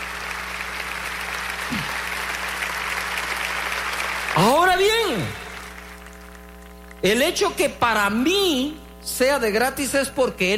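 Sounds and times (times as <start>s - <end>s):
audience applause: 0.0s - 7.0s
speech: 7.0s - 10.5s.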